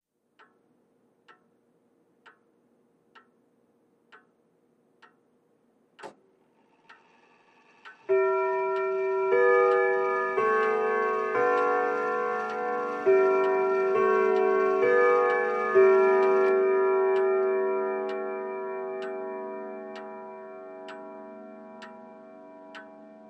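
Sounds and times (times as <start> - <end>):
grandfather clock: 3.1 - 3.4, 5.9 - 23.2.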